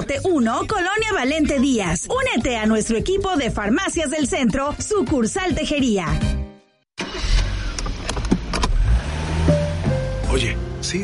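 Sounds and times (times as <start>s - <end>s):
speech: 0.1s - 6.4s
car engine rumbling: 7.0s - 11.0s.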